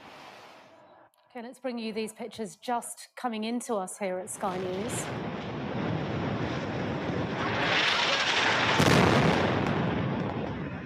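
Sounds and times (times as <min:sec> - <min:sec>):
speech: 0:01.4 - 0:05.4
airstrike explosions in Gaza City in news footage: 0:04.3 - 0:10.8.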